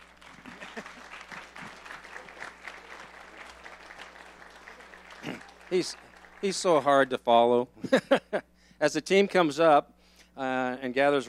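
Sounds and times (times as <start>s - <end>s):
audience clapping: 0.0s - 7.3s
laughter: 0.3s - 3.7s, 7.8s - 8.5s
speech: 5.2s - 11.2s.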